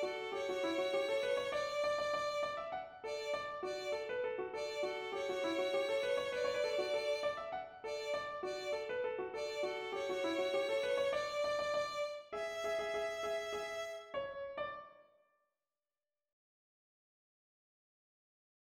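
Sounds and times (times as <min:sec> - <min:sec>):
polka melody and harmony: 0:00.0 - 0:14.2.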